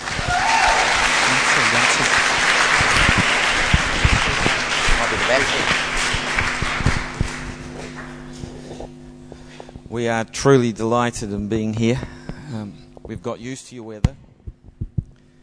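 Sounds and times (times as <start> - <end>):
audience applause at a church gathering: 0.0 - 8.2
speech: 10.0 - 14.3.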